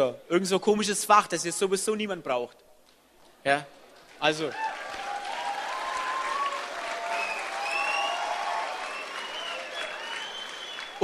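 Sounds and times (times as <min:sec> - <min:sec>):
speech: 0:00.0 - 0:02.6, 0:03.4 - 0:04.7
audience clapping: 0:03.9 - 0:11.0.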